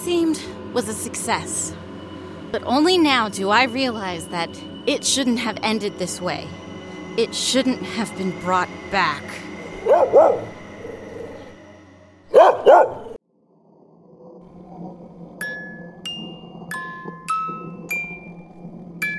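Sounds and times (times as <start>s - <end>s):
speech: 0.3s - 1.9s, 2.5s - 6.6s, 7.2s - 10.6s
dog barking: 9.8s - 10.6s, 12.3s - 13.2s.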